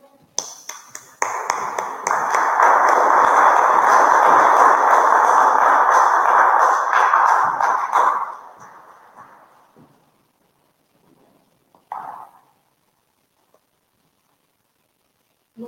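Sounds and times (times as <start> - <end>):
audience applause: 0.4 - 9.8.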